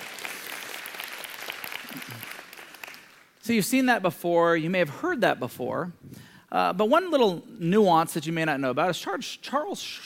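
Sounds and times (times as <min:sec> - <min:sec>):
audience clapping: 0:00.0 - 0:03.4
speech: 0:03.5 - 0:10.0.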